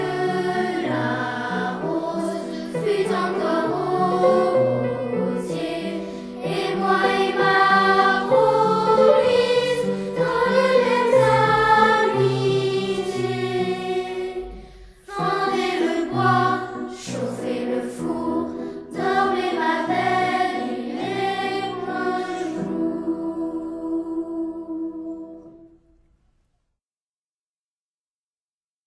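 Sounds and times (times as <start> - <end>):
children's voices singing a Quebec folk song: 0.0 - 25.7.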